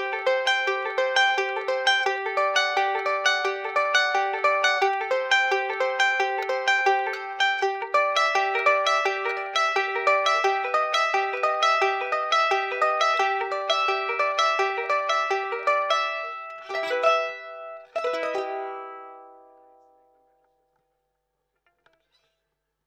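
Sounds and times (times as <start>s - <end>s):
charango fingerpicking through raw piezo pickup: 0.0s - 20.9s, 21.5s - 22.5s.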